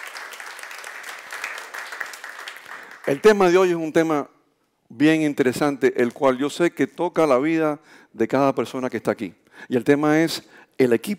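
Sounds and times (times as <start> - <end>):
audience applause at Alfa Omega's Powerhouse evening gathering: 0.0 - 3.3
speech: 3.1 - 11.1.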